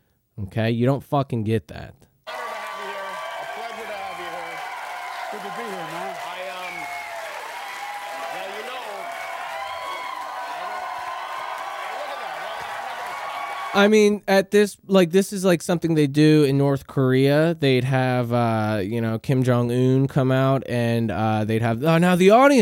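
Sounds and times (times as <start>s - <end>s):
speech: 0.4s - 2.1s, 13.7s - 22.6s
studio audience applauding: 2.3s - 13.8s
studio audience whooping and shouting: 2.3s - 13.8s.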